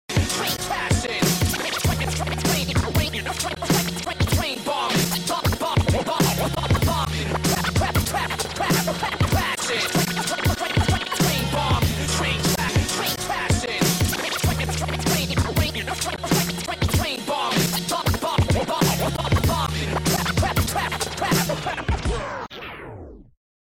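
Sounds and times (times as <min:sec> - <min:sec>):
scratching: 0:00.3 - 0:21.9.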